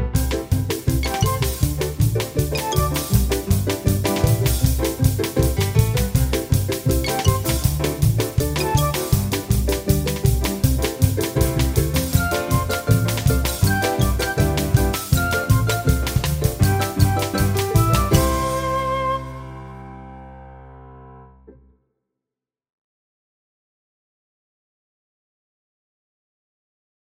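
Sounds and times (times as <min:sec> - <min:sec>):
peppy instrumental song: 0:00.1 - 0:20.6.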